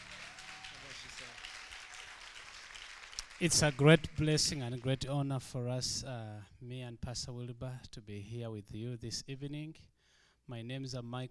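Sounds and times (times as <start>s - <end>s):
audience applause welcoming a guest pastor at a church gathering: 0.0s - 5.1s
speech: 3.4s - 9.9s, 10.5s - 11.2s.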